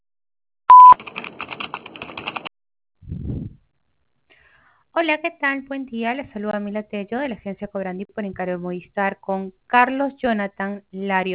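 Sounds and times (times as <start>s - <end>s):
telephone beep before a recorded voice message: 0.7s - 1.0s
speech: 5.0s - 11.3s.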